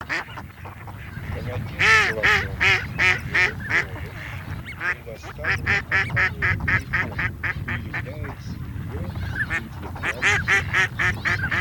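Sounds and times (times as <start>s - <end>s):
mallard: 0.0s - 11.5s.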